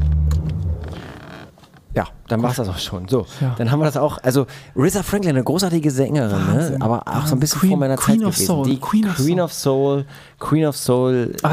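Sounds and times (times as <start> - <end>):
Ferrari 355 GTB engine roaring: 0.0 - 1.0
speech: 2.0 - 11.5.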